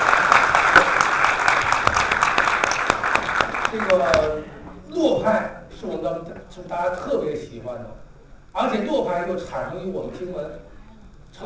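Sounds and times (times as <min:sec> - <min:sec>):
crowd clapping: 0:00.0 - 0:04.4
speech: 0:05.2 - 0:08.0, 0:08.6 - 0:10.7.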